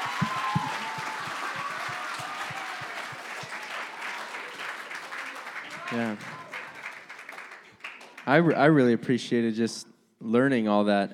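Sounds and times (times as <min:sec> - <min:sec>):
whoop: 0:00.0 - 0:04.4
church audience applause: 0:00.0 - 0:08.6
speech: 0:05.9 - 0:06.4, 0:08.3 - 0:11.1.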